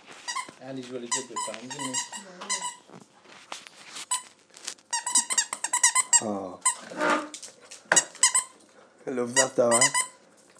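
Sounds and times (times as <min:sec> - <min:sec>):
speech: 0:00.6 - 0:03.1, 0:06.2 - 0:07.1, 0:09.0 - 0:10.0
squeaky dog toy squeaking: 0:01.1 - 0:02.8, 0:04.9 - 0:07.3, 0:07.9 - 0:08.6, 0:09.4 - 0:10.2.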